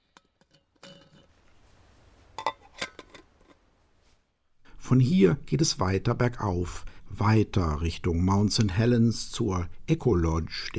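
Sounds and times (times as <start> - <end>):
tea cups and saucers clinking while serving tea: 0.0 - 1.5, 2.4 - 3.6
rustling scrape: 0.0 - 4.5
speech: 4.9 - 10.7.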